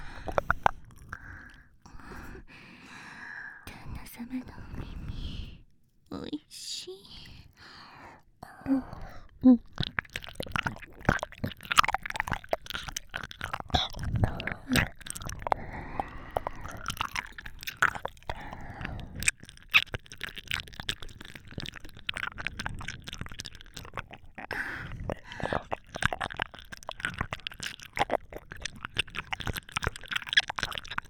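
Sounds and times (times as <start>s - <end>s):
ear licking on binaural microphone: 0.0s - 3.2s, 7.2s - 31.0s
binaural microphone whispering in both ears: 3.5s - 7.6s, 8.4s - 9.8s.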